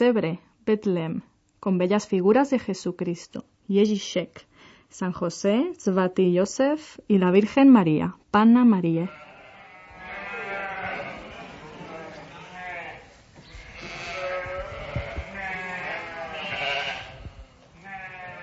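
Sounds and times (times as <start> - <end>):
speech: 0.0 - 9.2
sheep bleating: 9.0 - 18.4.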